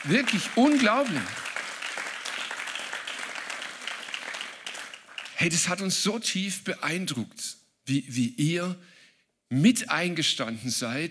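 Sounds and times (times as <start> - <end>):
speech: 0.0 - 1.5, 5.4 - 8.9, 9.5 - 11.0
audience applause: 0.0 - 5.6.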